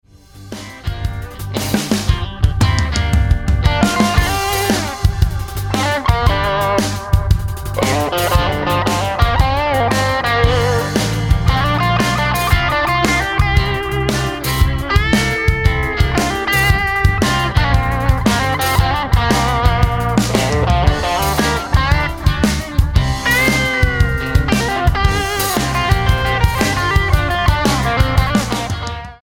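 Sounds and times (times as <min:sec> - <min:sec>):
guitar solo: 0:00.6 - 0:29.2.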